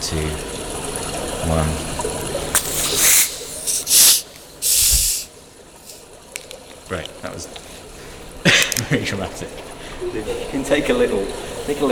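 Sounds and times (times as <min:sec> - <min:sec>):
speech: 0:00.1 - 0:00.5, 0:01.4 - 0:02.1, 0:06.9 - 0:07.6, 0:08.9 - 0:11.8
bottles being uncorked with hissing: 0:02.5 - 0:05.3.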